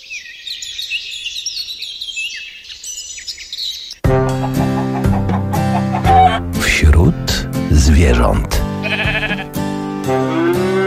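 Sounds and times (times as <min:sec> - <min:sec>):
birds singing and chirping: 0:00.0 - 0:09.6
loud dense harmonic music-like sound: 0:04.1 - 0:08.9, 0:09.5 - 0:10.8
speech: 0:08.0 - 0:08.6.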